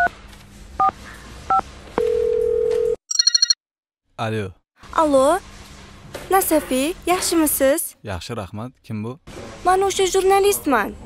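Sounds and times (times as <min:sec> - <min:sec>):
telephone keypad dialing tones: 0:02.5 - 0:03.6
rapid pulsing electronic beeps: 0:03.1 - 0:03.6
telephone ringback tone: 0:03.1 - 0:03.6
speech: 0:04.2 - 0:05.5, 0:06.3 - 0:11.0.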